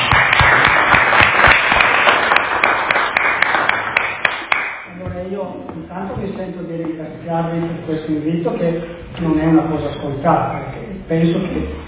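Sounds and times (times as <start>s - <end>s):
audience applause: 0.0s - 4.8s
speech: 7.4s - 11.8s.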